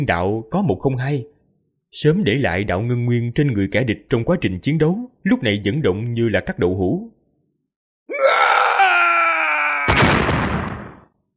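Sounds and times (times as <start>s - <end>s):
speech: 0.0s - 1.3s, 1.9s - 7.2s
loud dying scream: 8.1s - 10.3s.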